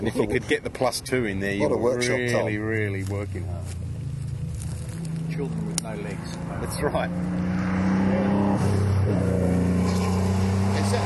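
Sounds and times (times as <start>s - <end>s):
speech: 0.0s - 3.9s, 5.4s - 7.9s, 8.6s - 10.1s, 10.9s - 11.0s
modern Porsche engine revving: 3.3s - 11.0s.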